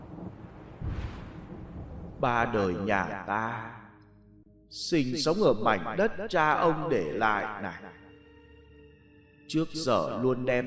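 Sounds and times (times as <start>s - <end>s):
rumbling thunder: 0.0s - 3.1s
speech: 2.2s - 3.8s, 4.7s - 8.0s, 9.5s - 10.6s.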